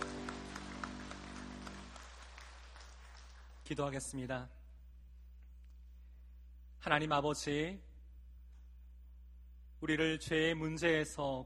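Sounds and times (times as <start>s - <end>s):
audience applause: 0.0s - 3.9s
speech: 3.7s - 4.6s, 6.8s - 7.9s, 9.8s - 11.4s.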